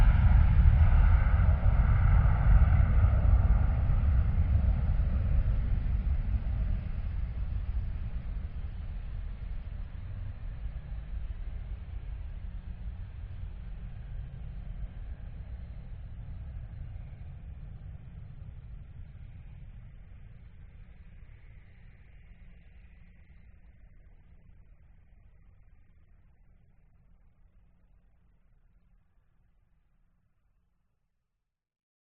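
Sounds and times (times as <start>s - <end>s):
private jet taking off: 0.0s - 22.0s.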